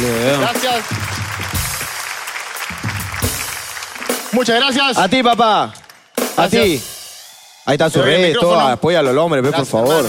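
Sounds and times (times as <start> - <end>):
crowd applause for a magician: 0.0 - 6.9
speech: 0.3 - 1.6, 4.4 - 5.8, 6.4 - 6.9, 7.7 - 10.0.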